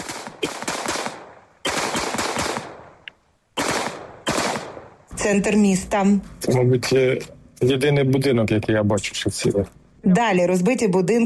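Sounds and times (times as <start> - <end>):
machine-gun fire at drones: 0.0 - 3.0, 3.6 - 5.6
speech: 5.2 - 11.2.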